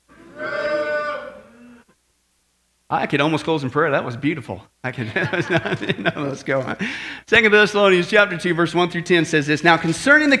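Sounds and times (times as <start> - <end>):
crowd mooing in imitation of cattle: 0.1 - 1.8
speech: 2.9 - 10.3
laughter: 4.9 - 7.0.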